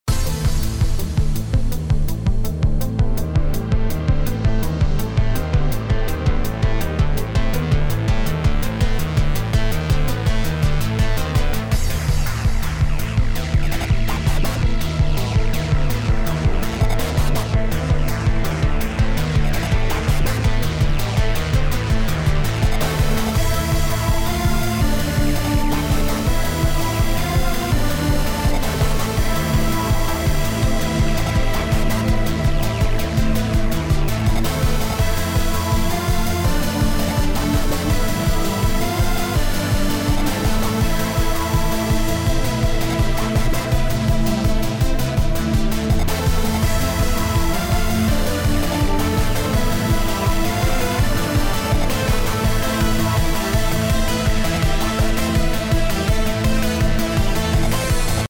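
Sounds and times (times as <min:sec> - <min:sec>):
boss battle music loop: 0:00.0 - 0:58.2.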